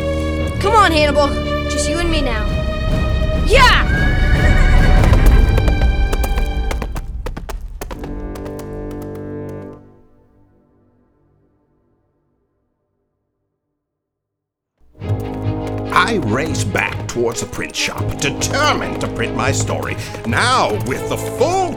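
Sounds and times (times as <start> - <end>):
horse hooves clopping: 0.0 - 10.2, 14.8 - 21.7
speech: 0.8 - 2.6, 16.4 - 21.7
horse whinnying: 3.6 - 5.7.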